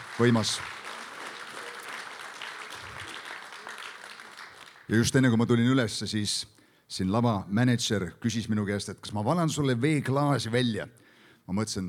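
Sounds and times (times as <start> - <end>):
audience applause: 0.0 - 5.0
speech: 0.2 - 0.8, 4.9 - 11.8.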